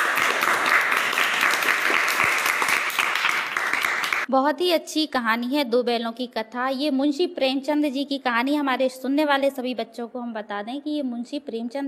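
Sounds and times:
villagers clapping: 0.0s - 4.3s
speech: 4.3s - 11.8s.

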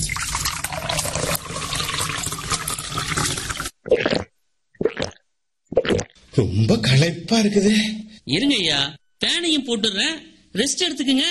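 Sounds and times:
cool buttermilk being poured: 0.0s - 5.2s
speech: 6.4s - 11.2s.

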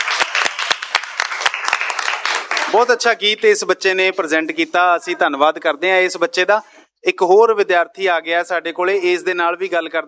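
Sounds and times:
loud applause for a student's song at a school event: 0.0s - 2.9s
speech: 2.7s - 10.0s.

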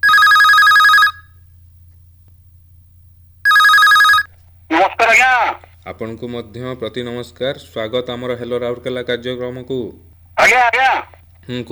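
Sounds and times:
electronic telephone ringing for an incoming call to a phone-in show: 0.0s - 1.3s, 3.5s - 4.3s
speech: 5.1s - 11.6s.

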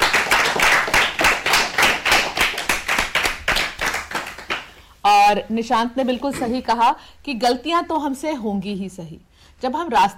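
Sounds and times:
children clapping for a speaker: 0.0s - 4.8s
speech: 5.1s - 10.1s.

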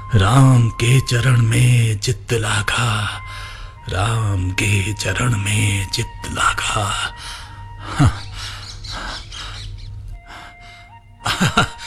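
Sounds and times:
speech: 0.1s - 8.2s, 11.4s - 11.8s
parrot chirping: 8.1s - 10.7s
laughter: 11.3s - 11.8s.

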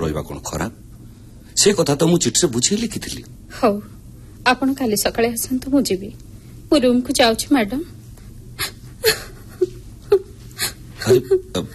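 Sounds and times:
speech: 0.0s - 0.9s, 1.6s - 8.0s, 11.1s - 11.7s
person crying and sobbing: 8.6s - 11.7s.

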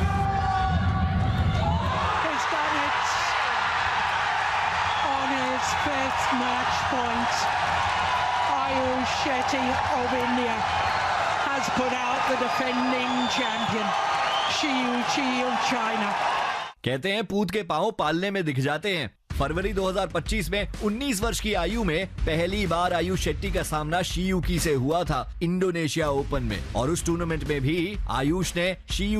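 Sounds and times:
stadium crowd cheering after match point: 0.0s - 16.8s
speech: 9.5s - 10.8s, 11.6s - 29.1s.

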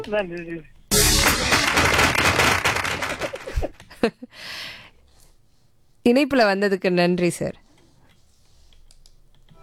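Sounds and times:
speech: 0.1s - 1.9s, 3.6s - 4.8s, 6.0s - 7.7s
applause: 1.1s - 3.7s.

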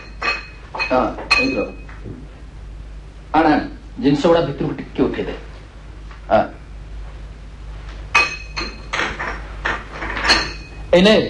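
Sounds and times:
metal cooking pots and kadai pans being handled: 0.0s - 1.9s, 8.2s - 10.8s
speech: 0.9s - 2.4s, 3.3s - 5.5s, 6.3s - 6.5s, 10.9s - 11.2s.

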